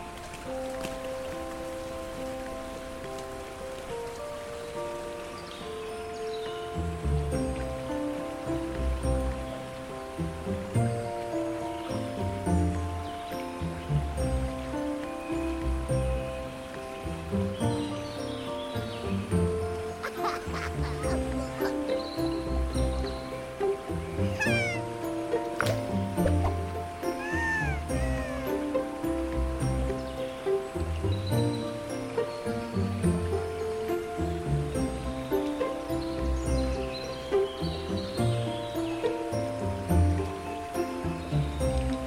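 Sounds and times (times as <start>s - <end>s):
gentle fantasy village music: 0.0s - 42.0s
bright chirps and small rising calls: 24.2s - 24.9s.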